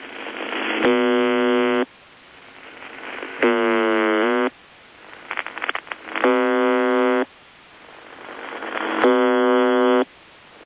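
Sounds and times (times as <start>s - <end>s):
USB buzzer: 0.9s - 1.8s, 3.4s - 4.5s, 6.2s - 7.3s, 9.0s - 10.0s.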